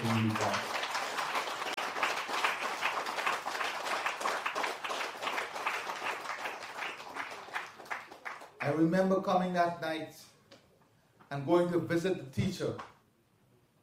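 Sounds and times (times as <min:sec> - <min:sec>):
audience applause: 0:00.0 - 0:08.8
speech: 0:00.2 - 0:00.7, 0:08.7 - 0:10.3, 0:11.3 - 0:12.9.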